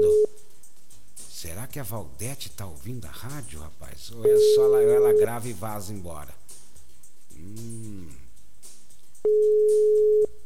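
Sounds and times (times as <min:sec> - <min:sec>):
telephone ringback tone on an unanswered collect call: 0:00.0 - 0:00.4, 0:04.3 - 0:05.3, 0:09.3 - 0:10.4
speech: 0:01.4 - 0:06.4, 0:07.4 - 0:08.2, 0:09.2 - 0:10.4.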